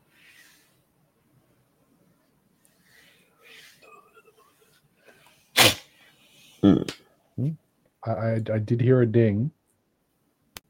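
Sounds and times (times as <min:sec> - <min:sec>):
person sniffling: 0:02.8 - 0:06.9
speech: 0:06.6 - 0:09.6.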